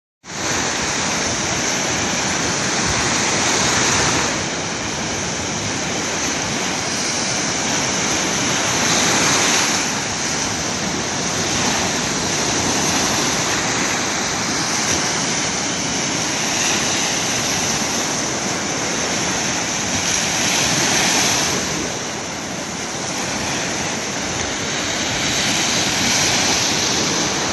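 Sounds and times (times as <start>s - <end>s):
sea waves: 0.3s - 27.5s.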